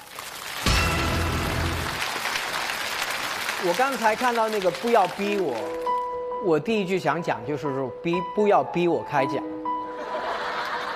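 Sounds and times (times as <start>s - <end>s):
audience applause: 0.0s - 5.9s
speech: 3.6s - 9.5s
laughter: 9.9s - 10.9s.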